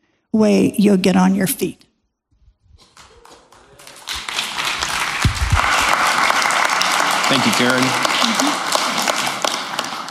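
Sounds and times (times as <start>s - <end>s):
speech: 0.4s - 1.8s, 7.3s - 8.4s
audience clapping: 2.8s - 10.0s.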